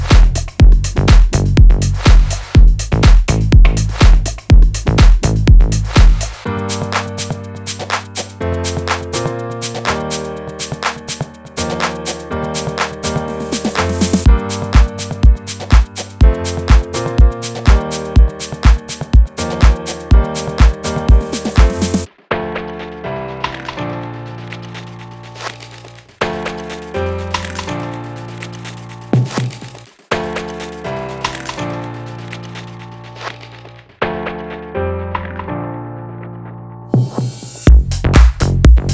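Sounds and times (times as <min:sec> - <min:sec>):
house music drum loop: 0:00.0 - 0:22.1, 0:29.2 - 0:30.0, 0:37.7 - 0:38.9.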